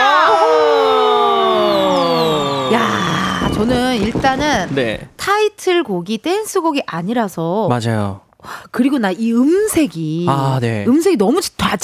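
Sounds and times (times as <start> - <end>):
crowd cheering sound effect: 0.0 - 5.2
speech: 3.6 - 11.8.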